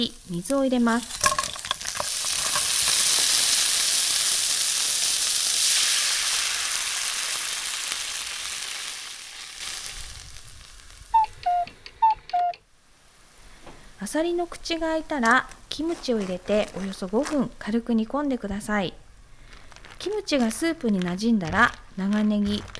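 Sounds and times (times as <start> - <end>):
speech: 0.0 - 1.3, 14.0 - 19.0, 20.0 - 22.7
ginger and garlic sizzling in sesame oil: 0.0 - 11.2
short high electronic beeps: 11.2 - 12.6.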